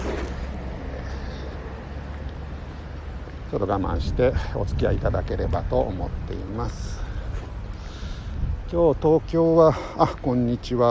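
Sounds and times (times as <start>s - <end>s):
speech: 3.5s - 7.0s, 8.7s - 10.8s
strong wind blowing into microphone outdoors: 3.8s - 9.5s.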